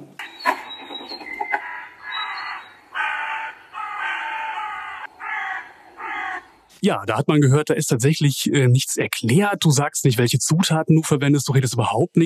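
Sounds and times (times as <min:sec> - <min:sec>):
crows cawing outdoors: 0:01.3 - 0:06.7
speech: 0:06.8 - 0:12.2.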